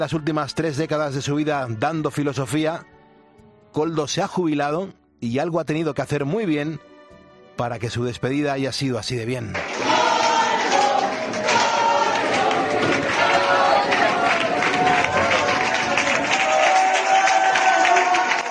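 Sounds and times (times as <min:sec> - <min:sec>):
speech: 0:00.0 - 0:02.9, 0:03.7 - 0:06.9, 0:07.6 - 0:10.0
large crowd of students and colleagues clapping and cheering in an ovation: 0:09.6 - 0:18.4.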